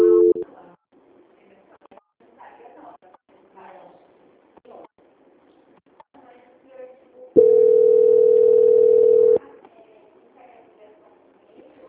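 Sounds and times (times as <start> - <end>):
telephone call transfer tone: 0.0 - 0.4, 7.4 - 9.4.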